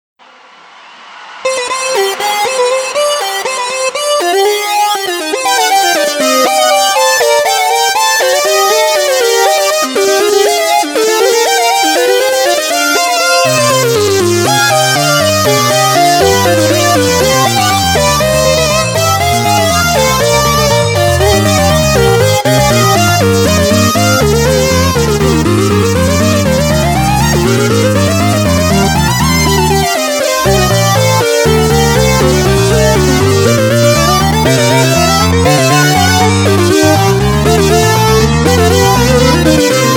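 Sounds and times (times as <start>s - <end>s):
fugue in C minor: 1.5s - 39.9s.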